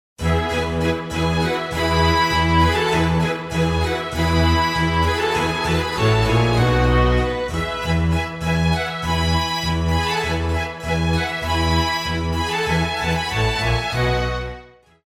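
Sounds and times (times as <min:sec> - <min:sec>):
classical music: 0:00.2 - 0:15.0.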